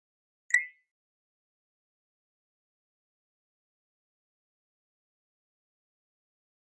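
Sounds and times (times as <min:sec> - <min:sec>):
camera flash beep: 0:00.5 - 0:00.8.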